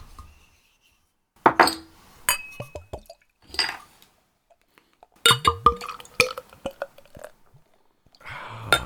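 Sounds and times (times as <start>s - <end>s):
glass clinks: 1.6s - 2.9s
beer pouring into a glass: 5.3s - 7.4s.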